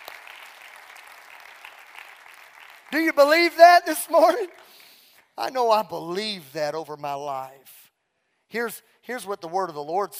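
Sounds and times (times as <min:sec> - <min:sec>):
audience clapping hands: 0:00.0 - 0:05.4
speech: 0:02.9 - 0:04.8, 0:05.4 - 0:07.8, 0:08.5 - 0:10.1.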